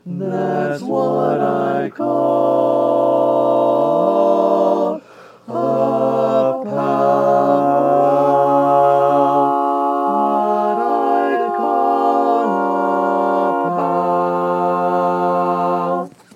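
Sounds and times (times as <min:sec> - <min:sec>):
barbershop tags sung by all parts: 0:00.0 - 0:16.2.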